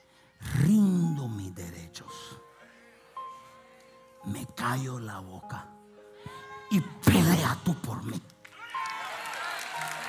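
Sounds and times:
speech: 0.7 - 0.9, 4.6 - 5.7, 6.7 - 8.4
audience applause: 8.4 - 10.0.

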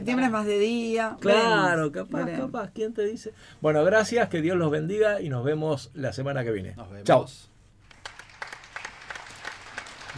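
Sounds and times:
speech: 0.0 - 7.5
light applause, a few hands clapping: 7.9 - 10.1.

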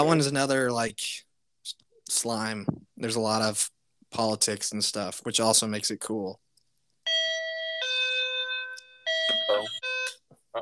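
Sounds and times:
speech: 0.0 - 1.2, 2.1 - 6.4
electronic doorbell two-tone chimes: 7.1 - 10.1.

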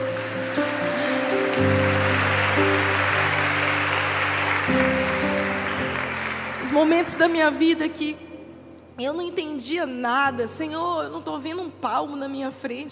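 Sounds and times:
audience applause: 0.0 - 7.2
organ-like chords: 0.0 - 8.7
speech: 6.8 - 8.3, 9.0 - 12.9.

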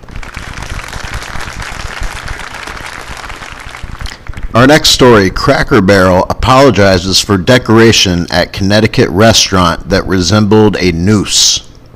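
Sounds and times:
audience applause: 0.0 - 4.5
speech: 4.5 - 11.7.

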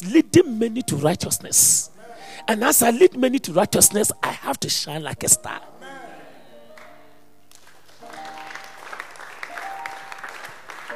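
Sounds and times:
speech: 0.0 - 5.7
weak audience clapping: 6.7 - 10.9.

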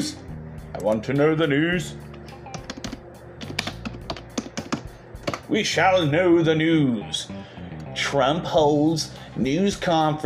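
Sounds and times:
speech: 0.8 - 2.1, 5.5 - 7.4, 8.1 - 10.2
computer keyboard and mouse clicking to open the news: 2.5 - 5.5.

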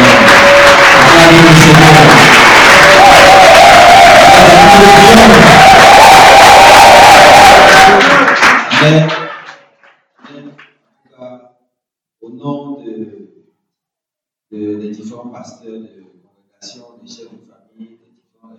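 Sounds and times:
church congregation cheering and acclaiming the Lord: 0.0 - 9.6.

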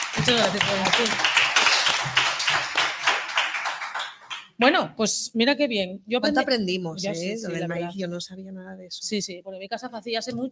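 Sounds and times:
applause: 0.0 - 4.6
speech: 0.2 - 1.4, 4.6 - 10.5.

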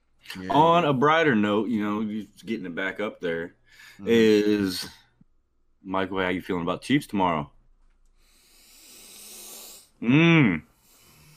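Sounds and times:
speech: 0.4 - 5.0, 5.8 - 7.6, 10.0 - 10.7
man taking a deep breath: 3.7 - 4.0, 8.2 - 9.9.

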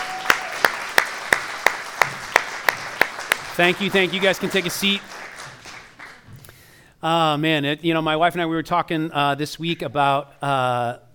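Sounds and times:
round of applause: 0.0 - 6.3
speech: 3.6 - 5.2, 7.0 - 11.1.

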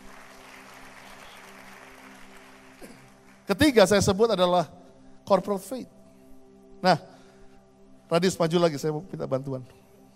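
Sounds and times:
applause: 0.0 - 3.7
speech: 2.8 - 6.0, 6.8 - 7.1, 8.1 - 9.8.

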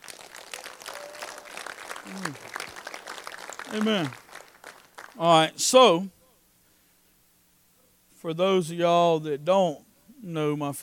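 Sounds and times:
audience clapping: 0.0 - 5.4
speech: 2.1 - 2.6, 3.7 - 4.2, 5.2 - 6.2, 8.2 - 10.8.

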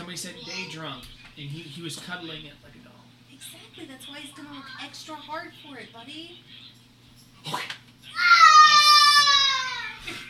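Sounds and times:
speech: 0.2 - 6.7, 7.4 - 8.4
child screaming in excitement: 8.2 - 10.0.

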